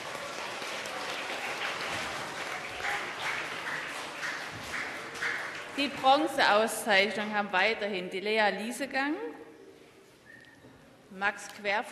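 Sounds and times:
audience applause: 0.0s - 5.8s
speech: 5.8s - 9.3s, 11.2s - 11.9s.

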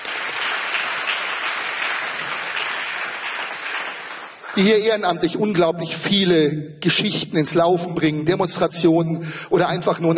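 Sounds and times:
audience applause: 0.0s - 4.8s
speech: 4.6s - 10.1s.

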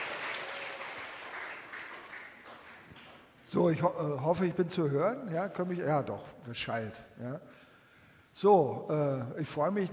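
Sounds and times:
audience applause: 0.0s - 3.2s
speech: 3.5s - 7.7s, 8.4s - 9.9s.

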